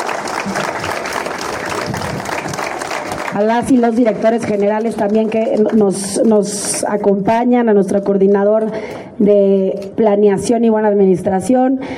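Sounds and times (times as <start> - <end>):
audience applause: 0.0 - 6.0
speech: 3.4 - 11.9.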